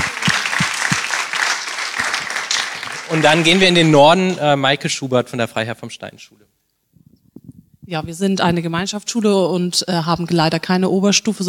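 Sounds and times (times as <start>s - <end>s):
audience applause: 0.0s - 4.2s
individual loud claps: 0.0s - 4.2s
speech: 3.1s - 6.6s, 7.9s - 11.4s.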